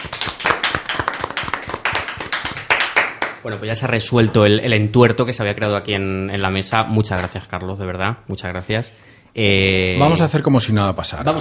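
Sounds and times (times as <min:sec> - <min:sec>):
applause from a small group in the studio: 0:00.0 - 0:03.4
speech: 0:03.4 - 0:11.3.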